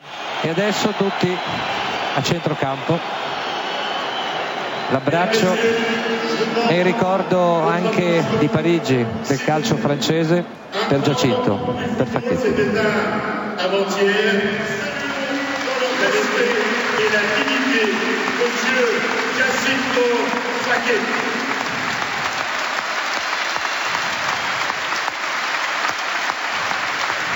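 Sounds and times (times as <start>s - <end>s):
stadium crowd clapping: 0.0s - 8.7s, 14.6s - 27.3s
stadium crowd voices: 0.0s - 27.3s
speech: 0.4s - 3.4s, 4.9s - 14.9s, 16.0s - 21.3s.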